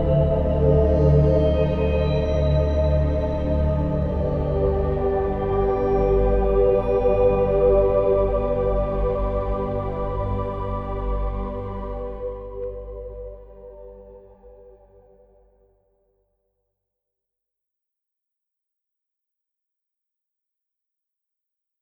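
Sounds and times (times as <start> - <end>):
ambient music: 0.0 - 15.4.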